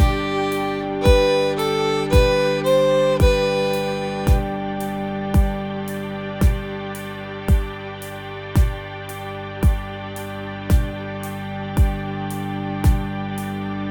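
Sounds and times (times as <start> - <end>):
practice loop scale beat: 0.0 - 5.7, 6.4 - 6.8, 7.5 - 7.8, 8.6 - 8.9, 9.6 - 9.9, 10.7 - 11.0, 11.8 - 12.1, 12.8 - 13.1.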